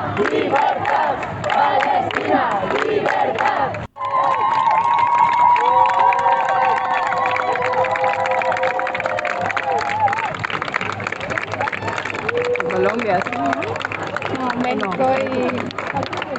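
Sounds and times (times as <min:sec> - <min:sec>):
large crowd cheering and clapping for Mexican flotilla activists: 0:00.0 - 0:16.3
speech: 0:00.2 - 0:00.9
many voices shouting and whooping: 0:04.0 - 0:10.4, 0:11.3 - 0:13.8.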